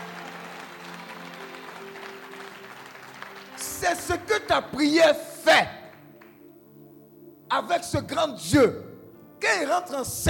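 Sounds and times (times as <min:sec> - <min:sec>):
church congregation applauding during worship teaching: 0:00.0 - 0:06.4
speech: 0:03.8 - 0:05.8, 0:07.5 - 0:08.8, 0:09.4 - 0:10.2.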